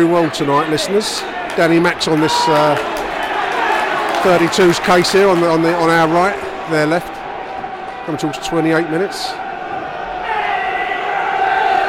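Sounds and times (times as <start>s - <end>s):
speech: 0.0s - 3.1s, 4.2s - 7.2s, 8.0s - 9.4s
football crowd cheering at a match: 0.0s - 11.8s.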